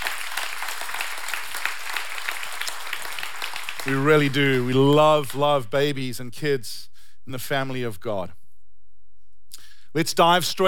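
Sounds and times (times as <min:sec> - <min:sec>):
audience applause: 0:00.0 - 0:05.4
speech: 0:03.8 - 0:08.4, 0:10.0 - 0:10.6.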